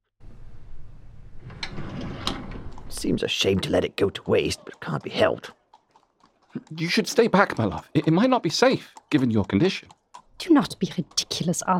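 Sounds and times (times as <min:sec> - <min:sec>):
window being opened in a smoke-filled room: 0:01.3 - 0:03.0
speech: 0:03.0 - 0:05.6, 0:06.6 - 0:11.7.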